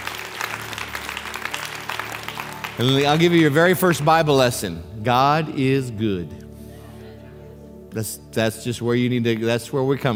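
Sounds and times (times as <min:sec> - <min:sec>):
church congregation applauding: 0:00.0 - 0:04.7
speech: 0:02.8 - 0:06.4, 0:07.9 - 0:10.1.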